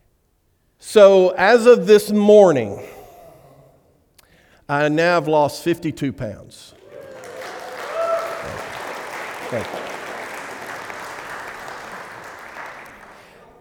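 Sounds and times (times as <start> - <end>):
speech: 0.9 - 3.0, 4.7 - 6.8, 9.5 - 9.9
audience clapping: 6.7 - 13.6.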